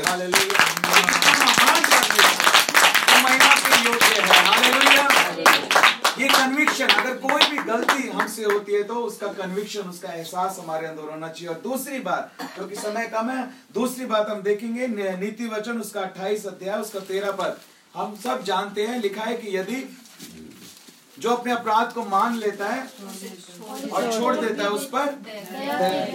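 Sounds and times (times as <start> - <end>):
church congregation clapping loudly for God: 0.0 - 8.6
preacher speaking: 0.0 - 20.0, 23.9 - 25.2
speech: 7.8 - 20.4, 21.2 - 26.1.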